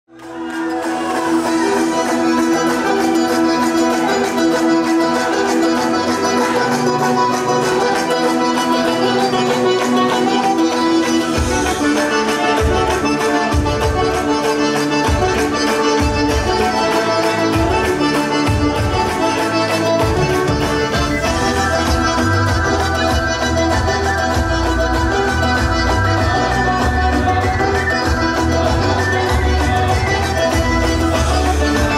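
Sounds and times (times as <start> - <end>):
Circassian Adyghe dance music: 0.1 - 31.9.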